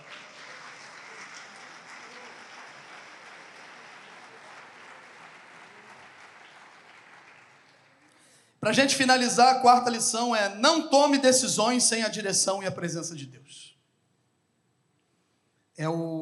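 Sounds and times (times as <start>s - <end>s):
audience applause: 0.0s - 8.2s
speech: 8.6s - 13.8s, 15.8s - 16.2s.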